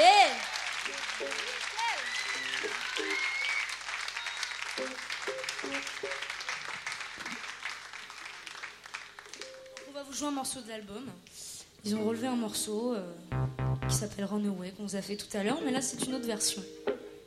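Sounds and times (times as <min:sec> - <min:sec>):
audience applauding at a live concert: 0:00.0 - 0:09.8
speech: 0:10.2 - 0:16.8.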